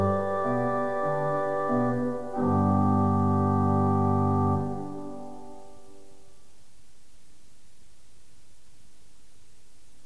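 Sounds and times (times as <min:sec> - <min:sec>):
organ prelude: 0:00.0 - 0:06.1.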